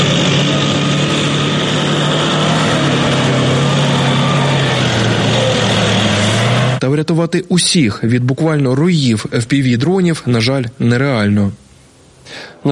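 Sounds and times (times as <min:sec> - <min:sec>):
military vehicle driving past on road: 0:00.0 - 0:06.8
speech: 0:06.9 - 0:11.6, 0:12.3 - 0:12.7.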